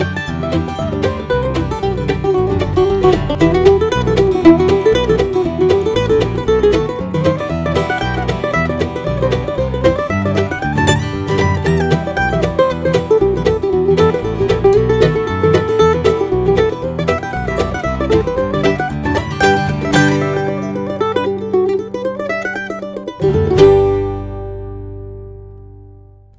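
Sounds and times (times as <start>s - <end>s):
mandolin intro jam: 0.0s - 26.3s.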